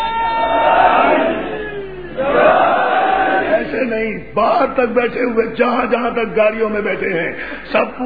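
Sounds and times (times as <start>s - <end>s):
crowd chanting a slogan at a rally in Pakistan: 0.0s - 3.8s
speech: 4.3s - 8.0s.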